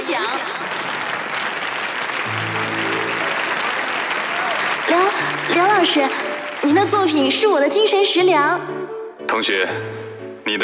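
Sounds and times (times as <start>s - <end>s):
large crowd applauding: 0.0s - 8.2s
speech: 0.1s - 0.8s, 5.5s - 10.6s.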